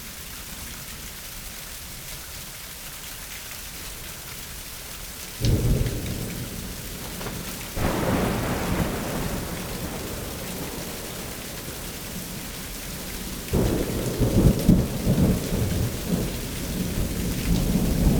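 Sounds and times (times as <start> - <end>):
spring thunderstorm in suburbs: 5.4 - 18.1.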